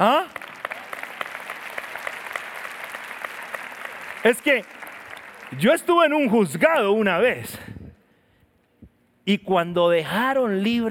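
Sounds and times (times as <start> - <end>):
speech: 0.0 - 0.3, 4.2 - 4.8, 5.5 - 7.7, 9.3 - 10.8
audience applause: 0.0 - 6.2.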